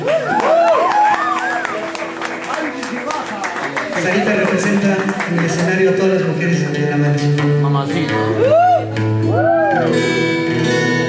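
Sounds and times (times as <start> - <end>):
audience applause: 0.0 - 6.3
speech: 4.0 - 10.4.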